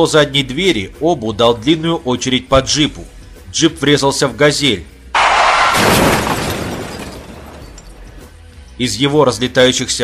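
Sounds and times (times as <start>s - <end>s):
speech: 0.0s - 4.9s, 8.8s - 10.0s
explosion tearing apart a blue SUV hit by an under-barrel grenade launcher: 5.2s - 8.0s.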